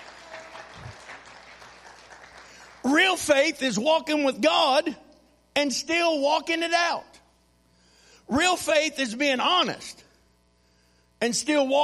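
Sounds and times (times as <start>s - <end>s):
audience clapping: 0.0s - 3.1s
speech: 2.8s - 5.0s, 5.6s - 7.2s, 8.3s - 10.0s, 11.2s - 11.8s.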